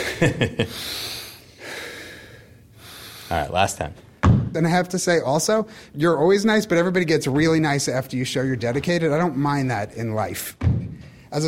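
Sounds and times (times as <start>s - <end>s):
speech: 0.2s - 1.1s, 3.3s - 11.4s
deep breaths during a hard weightlifting workout: 0.6s - 3.6s, 5.7s - 6.0s, 10.9s - 11.4s
person sniffing during a hard weightlifting workout: 0.7s - 3.4s.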